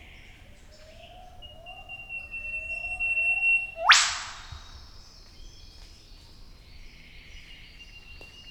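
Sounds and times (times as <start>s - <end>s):
Eastern whipbird Psophodes olivaceus whip call: 1.2s - 4.8s.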